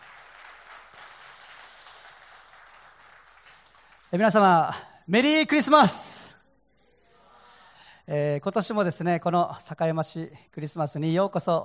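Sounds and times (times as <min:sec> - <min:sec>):
crowd applause: 0:00.0 - 0:04.4
speech: 0:04.1 - 0:06.1, 0:08.1 - 0:11.6.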